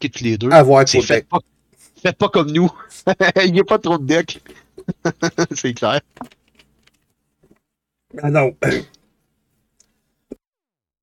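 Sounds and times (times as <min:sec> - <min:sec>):
speech: 0:00.0 - 0:06.4, 0:08.1 - 0:09.0
person coughing after water went down wrong: 0:08.6 - 0:09.0.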